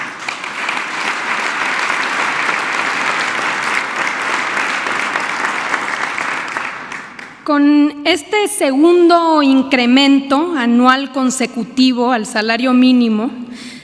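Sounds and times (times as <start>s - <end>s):
audience applause: 0.0s - 7.4s
speech: 7.5s - 13.7s.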